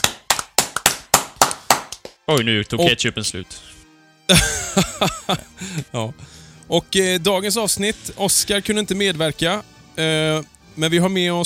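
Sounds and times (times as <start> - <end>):
brief hand clapping applause: 0.0 - 2.9
speech: 2.3 - 11.4
laughter: 4.3 - 6.2.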